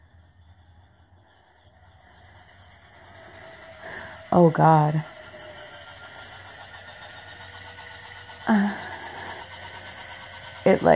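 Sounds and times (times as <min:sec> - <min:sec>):
vibrator motor humming: 0:00.0 - 0:10.9
speech: 0:04.3 - 0:05.1, 0:10.7 - 0:10.9.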